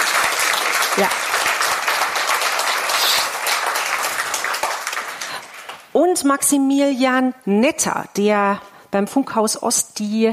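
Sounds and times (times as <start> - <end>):
audience applause: 0.0 - 5.9
speech: 1.0 - 1.2, 6.0 - 10.3.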